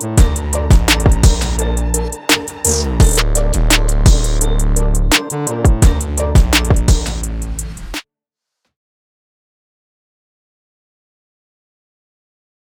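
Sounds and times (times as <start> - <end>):
orchestral trap music: 0.0 - 8.0.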